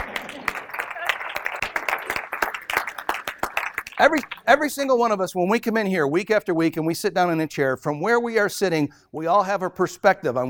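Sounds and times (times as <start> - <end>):
audience clapping: 0.0 - 4.6
speech: 4.0 - 10.4.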